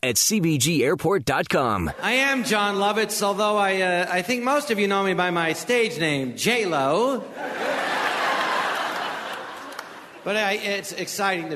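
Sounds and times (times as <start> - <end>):
speech: 0.0 - 7.8, 10.2 - 11.5
laughter: 1.8 - 3.2, 7.2 - 10.7
crowd cheering: 7.4 - 10.4.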